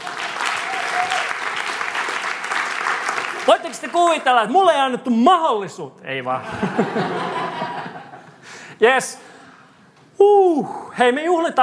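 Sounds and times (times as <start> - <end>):
audience applause: 0.0 - 4.3
speech: 3.5 - 7.4, 8.8 - 9.3, 10.2 - 11.6
laughter: 6.4 - 8.4.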